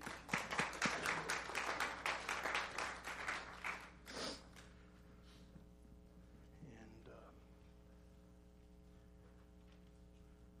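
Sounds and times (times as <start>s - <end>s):
audience applause: 0.0s - 4.0s.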